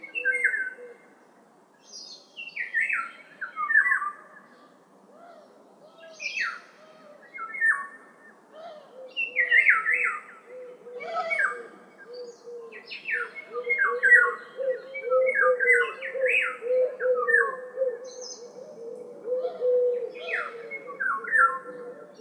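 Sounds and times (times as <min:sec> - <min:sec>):
birds singing: 0:01.8 - 0:22.2.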